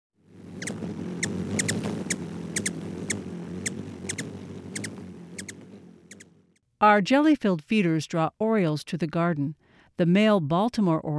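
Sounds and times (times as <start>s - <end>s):
ruby-throated hummingbird twitters and chips: 0.4s - 6.3s
speech: 6.8s - 11.1s.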